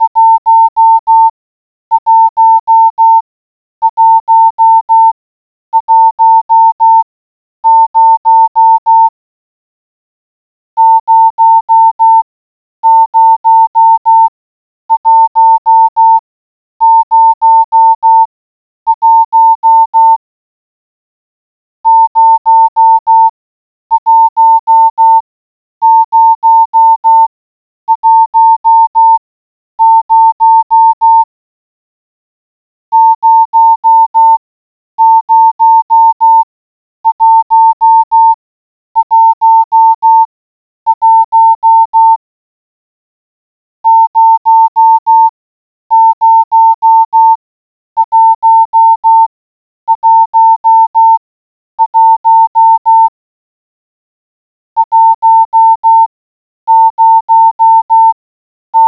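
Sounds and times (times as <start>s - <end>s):
morse code beeps: 0.0s - 1.3s, 1.9s - 3.2s, 3.8s - 5.2s, 5.8s - 7.0s, 7.6s - 9.1s, 10.8s - 14.3s, 14.9s - 16.2s, 16.8s - 18.3s, 18.9s - 20.2s, 21.8s - 25.2s, 25.8s - 27.3s, 27.9s - 29.2s, 29.8s - 31.3s, 32.9s - 34.4s, 35.0s - 38.4s, 39.0s - 40.3s, 40.9s - 42.2s, 43.8s - 47.4s, 48.0s - 49.3s, 49.9s - 51.2s, 51.8s - 53.2s, 54.8s - 56.1s, 56.7s - 58.2s.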